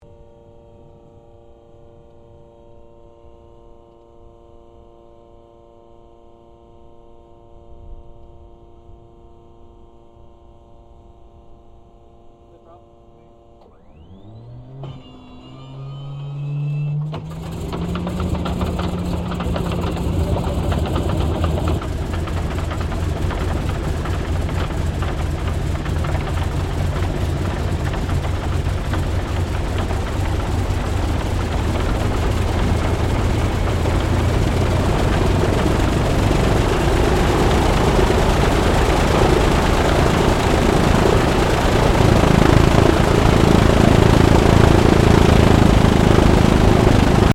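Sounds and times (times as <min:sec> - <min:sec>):
CA-13 Boomerang aircraft engine startup: 0:12.5 - 0:47.3.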